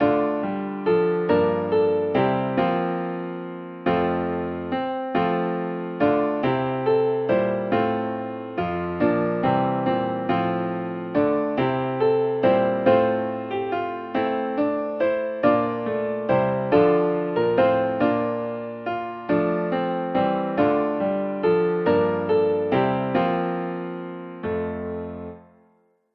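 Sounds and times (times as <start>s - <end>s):
musical accompaniment: 0.0s - 25.6s.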